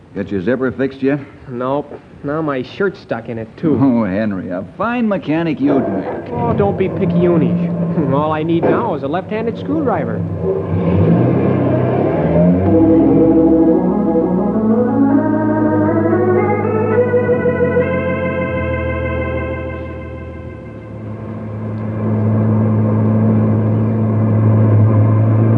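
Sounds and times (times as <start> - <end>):
speech: 0.2 - 11.2
car engine revving as the car speeds along: 5.7 - 25.5.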